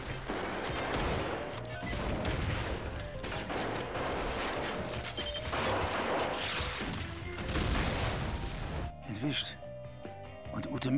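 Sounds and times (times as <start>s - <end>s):
repeated gunshots: 0.0s - 8.9s
music: 0.0s - 10.9s
speech: 9.3s - 9.6s.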